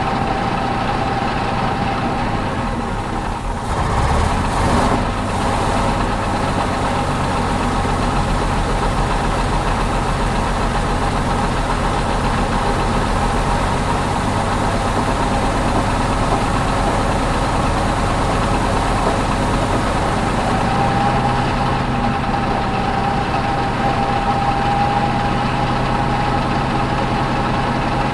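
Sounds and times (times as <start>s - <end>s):
panther vehicle engine starting, driving slowly and stopping, heard onboard: 0.0s - 28.1s.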